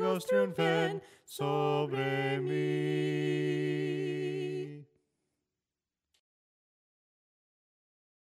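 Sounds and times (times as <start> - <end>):
soprano singing hymns: 0.0 - 4.9.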